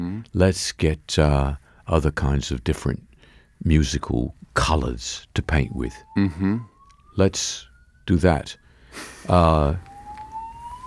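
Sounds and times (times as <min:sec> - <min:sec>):
speech: 0:00.2 - 0:09.9
fire alarm: 0:05.4 - 0:10.8.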